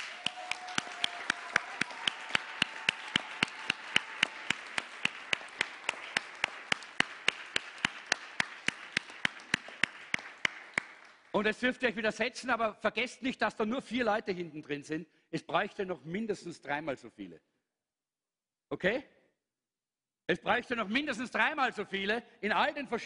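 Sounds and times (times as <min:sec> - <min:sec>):
crowd noise: 0:00.0 - 0:07.0
audience clapping: 0:00.0 - 0:11.7
speech: 0:11.4 - 0:17.5, 0:18.7 - 0:19.2, 0:20.3 - 0:23.0.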